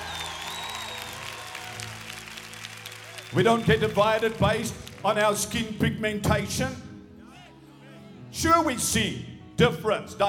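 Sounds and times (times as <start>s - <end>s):
audience clapping: 0.0s - 5.7s
speech: 3.3s - 6.8s, 8.4s - 10.2s.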